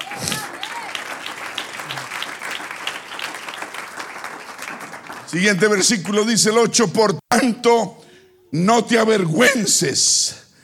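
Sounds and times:
person cheering: 0.0s - 1.1s
audience applause: 0.0s - 6.3s
speech: 5.3s - 10.4s.

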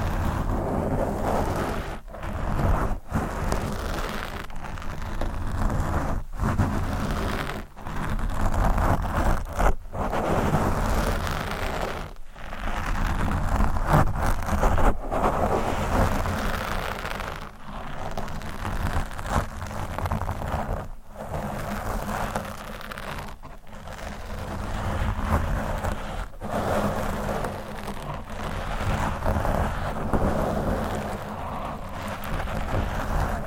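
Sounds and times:
microphone scratched and rubbed: 0.0s - 33.4s.

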